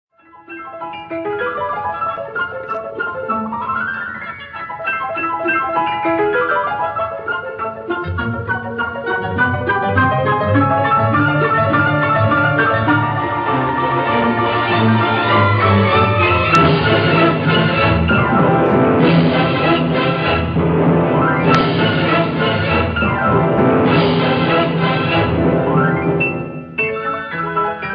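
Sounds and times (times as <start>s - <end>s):
piano concerto in A major: 0.1s - 27.9s.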